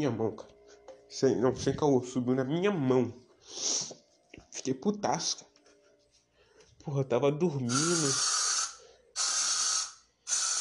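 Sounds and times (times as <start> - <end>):
speech: 0.0 - 4.0, 4.6 - 5.5, 6.8 - 8.4
aerosol insecticide spray hissing: 3.5 - 4.0, 7.7 - 10.6.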